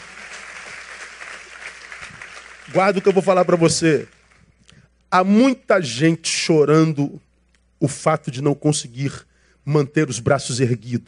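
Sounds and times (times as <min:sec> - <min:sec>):
audience applauding: 0:00.0 - 0:04.4
speech: 0:02.7 - 0:04.2, 0:05.1 - 0:11.0.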